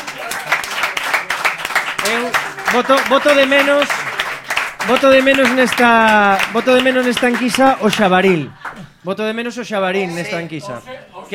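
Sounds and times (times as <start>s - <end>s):
audience applause: 0.0s - 8.9s
speech: 2.1s - 4.0s, 4.8s - 11.3s.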